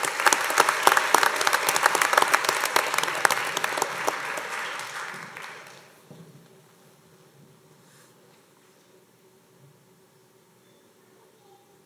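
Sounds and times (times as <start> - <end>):
round of applause: 0.0 - 6.0.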